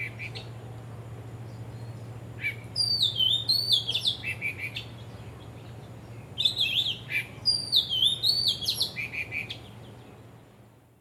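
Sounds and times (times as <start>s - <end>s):
faint low hum: 0.0s - 10.9s
bird whistles and twitters: 2.4s - 4.8s, 6.4s - 9.6s.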